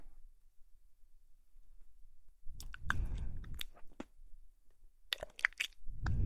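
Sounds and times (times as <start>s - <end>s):
kissing sounds: 2.6s - 4.1s
ear licking sounds: 5.1s - 6.2s.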